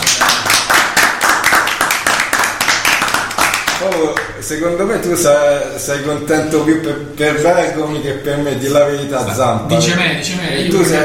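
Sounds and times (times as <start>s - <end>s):
audience applause: 0.0s - 4.3s
speech: 3.8s - 11.0s.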